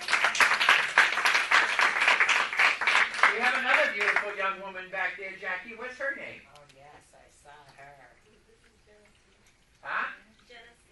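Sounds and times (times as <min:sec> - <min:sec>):
audience clapping: 0:00.0 - 0:04.4
speech: 0:04.5 - 0:07.9.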